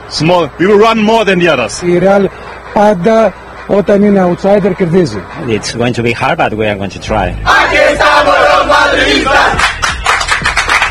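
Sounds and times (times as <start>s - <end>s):
speech: 0.1s - 9.8s
basketball fans chanting on a bus: 7.4s - 9.7s
claps: 9.4s - 10.9s.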